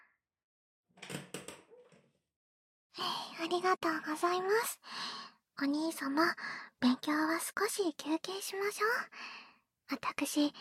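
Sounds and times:
door latch rattling as a door is opened: 1.0s - 2.0s
speech: 3.0s - 10.5s.

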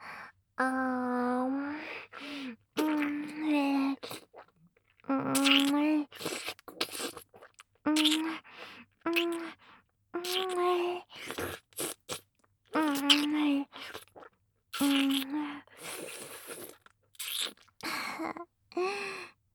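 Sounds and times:
oral sex sounds: 0.6s - 19.0s
nipple licking: 2.0s - 4.5s, 5.2s - 17.9s
ear licking: 5.3s - 8.4s, 10.2s - 17.8s.

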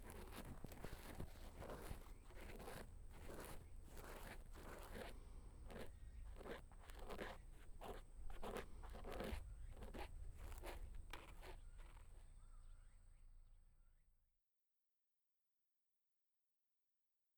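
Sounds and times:
ear cleaning on right ear: 0.0s - 12.1s.

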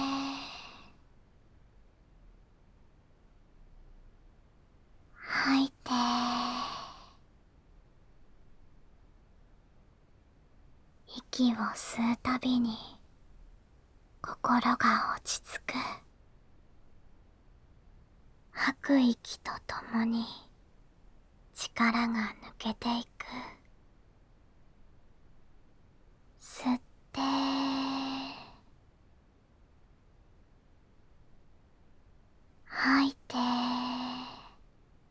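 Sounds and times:
ASMR whispering: 0.0s - 1.0s, 5.1s - 7.2s, 11.1s - 13.0s, 14.2s - 16.1s, 18.5s - 20.6s, 21.5s - 23.7s, 26.4s - 28.7s, 32.6s - 34.6s.

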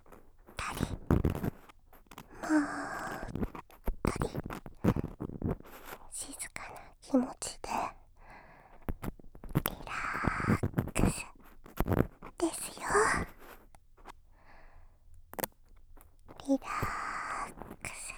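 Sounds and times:
ear cleaning in the right ear: 0.6s - 6.5s, 8.9s - 14.1s, 16.3s - 18.1s.

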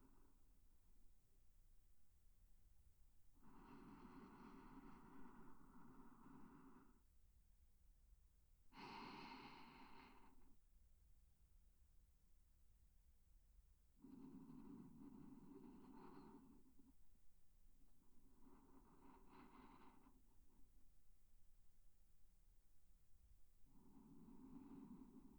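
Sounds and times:
sleeping breath in right ear: 3.4s - 7.0s, 8.8s - 10.5s, 14.0s - 17.0s, 18.3s - 20.4s, 23.7s - 25.3s.

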